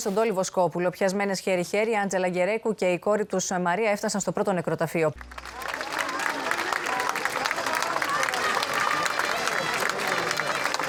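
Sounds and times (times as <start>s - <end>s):
speech: 0.0s - 5.7s
crowd applauding at funeral: 5.2s - 10.8s.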